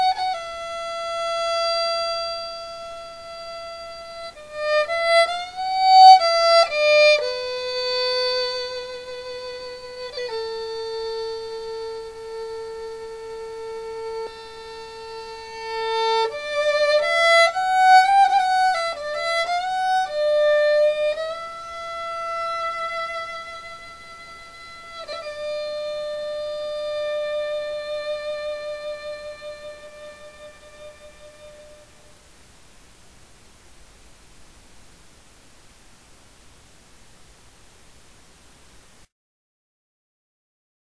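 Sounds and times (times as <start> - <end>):
violin solo: 0.0 - 32.5.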